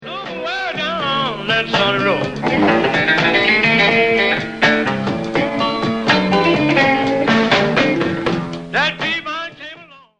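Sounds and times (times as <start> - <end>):
blues music: 0.0 - 10.1.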